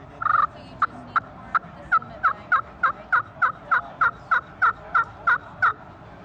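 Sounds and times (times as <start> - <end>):
slate-surface pot turkey call yelping: 0.2 - 0.5, 1.2 - 5.8.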